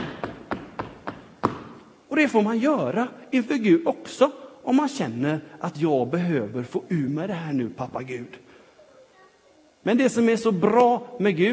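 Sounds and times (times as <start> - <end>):
feet stamping on the floor: 0.0 - 1.8
speech: 2.2 - 8.4, 9.8 - 11.5.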